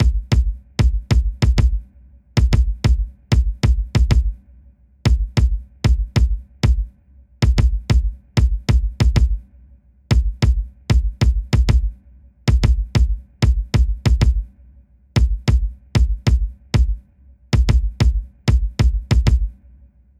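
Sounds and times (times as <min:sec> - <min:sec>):
secondary kick drum: 0:00.0 - 0:04.4, 0:05.1 - 0:09.5, 0:10.1 - 0:14.5, 0:15.2 - 0:19.7.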